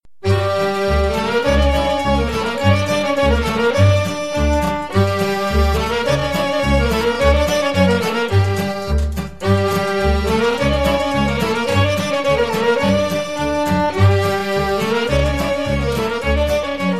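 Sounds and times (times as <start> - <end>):
Romanian folk tune: 0.1 - 16.9.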